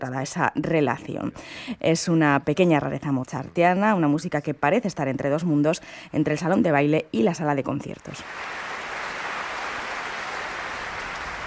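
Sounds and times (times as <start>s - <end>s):
speech: 0.0s - 8.6s
concert audience applause for orchestra: 8.2s - 11.4s.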